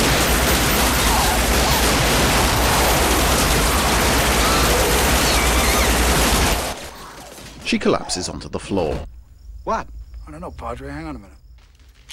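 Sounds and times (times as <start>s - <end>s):
gunfire from several men in an audio drama: 0.0s - 7.6s
speech: 7.7s - 11.4s.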